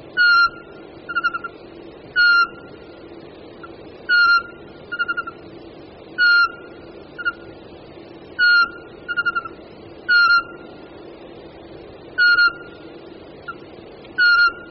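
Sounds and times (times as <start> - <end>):
Eurasian pygmy owl call: 0.2 - 1.6, 2.2 - 2.8, 3.6 - 5.4, 6.2 - 7.5, 8.4 - 10.7, 12.2 - 12.8, 13.4 - 13.6, 14.2 - 14.6.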